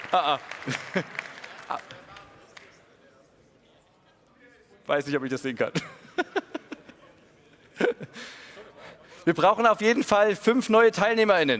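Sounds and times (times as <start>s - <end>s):
audience applause: 0.0s - 2.8s
speech: 0.1s - 2.0s, 4.9s - 6.4s, 9.2s - 11.5s
laughter: 0.4s - 2.3s, 5.7s - 9.0s.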